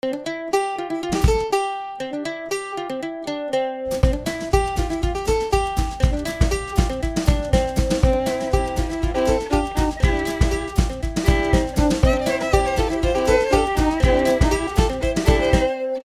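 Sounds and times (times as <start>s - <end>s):
country hoedown music: 0.0s - 16.0s.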